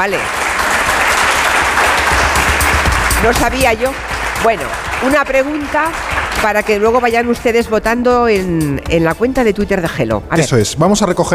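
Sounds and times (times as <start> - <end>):
speech: 0.0 - 0.6, 3.2 - 11.3
audience applause: 0.0 - 7.0.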